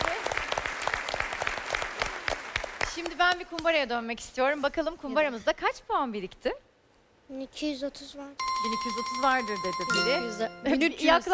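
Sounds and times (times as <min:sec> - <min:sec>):
game show studio audience applause: 0:00.0 - 0:03.4
speech: 0:03.0 - 0:06.7, 0:07.3 - 0:11.3.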